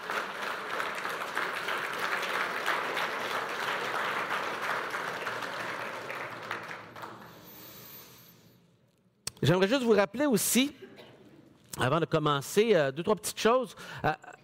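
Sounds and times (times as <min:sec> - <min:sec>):
audience applauding: 0:00.0 - 0:07.6
speech: 0:09.4 - 0:10.8, 0:11.8 - 0:14.2.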